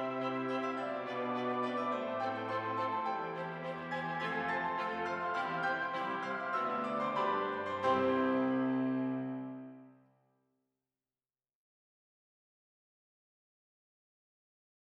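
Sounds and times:
quartet music: 0.0s - 9.8s.

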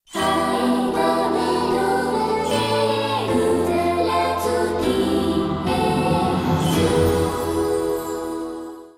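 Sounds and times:
waltz music: 0.2s - 8.9s.

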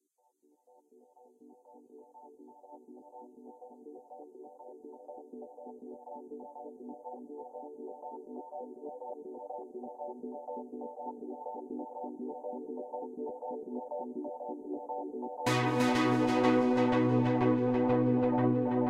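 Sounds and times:
synth theme music: 15.5s - 18.8s.

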